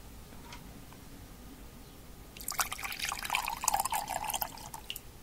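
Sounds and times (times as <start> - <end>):
water being prepared for washing nails: 2.4 - 5.0.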